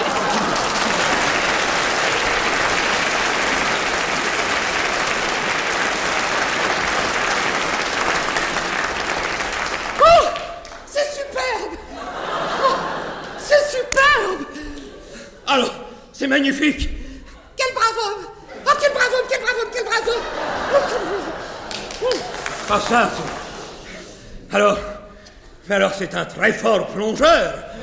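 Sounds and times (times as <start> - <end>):
laughter: 0.0 - 3.9, 11.5 - 15.2, 18.3 - 24.5
crowd applause: 0.0 - 11.0, 12.0 - 13.5, 20.0 - 24.2
speech: 16.4 - 16.9, 22.8 - 23.4, 24.6 - 24.9, 25.7 - 27.6.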